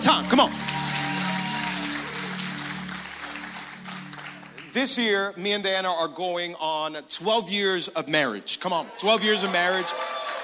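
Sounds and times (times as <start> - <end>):
speech: 0.0 - 0.8, 4.8 - 10.2
audience applauding and cheering: 0.0 - 5.2, 8.8 - 10.4
low musical drone: 0.0 - 5.4.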